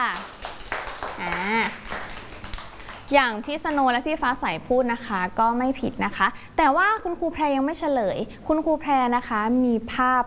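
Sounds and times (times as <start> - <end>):
children clapping: 0.0 - 4.0
speech: 3.1 - 10.2.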